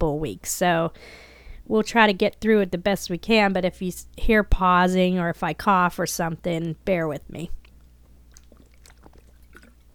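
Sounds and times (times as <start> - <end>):
speech: 0.2 - 7.6
person drinking a sip of water: 7.6 - 9.9.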